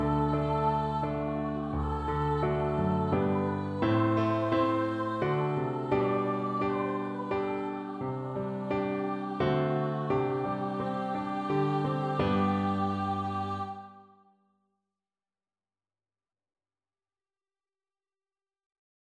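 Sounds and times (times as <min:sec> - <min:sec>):
piano accompaniment for a national anthem: 0:00.0 - 0:14.0.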